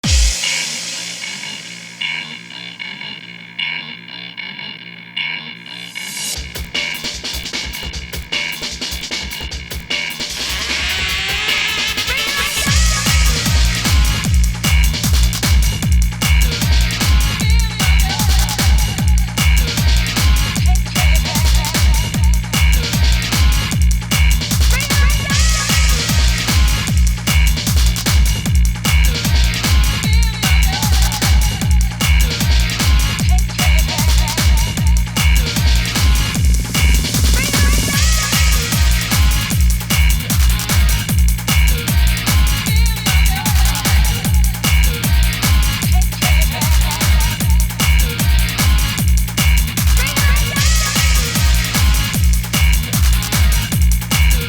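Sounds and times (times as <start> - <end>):
rock music: 0.0 - 3.6, 5.7 - 54.4.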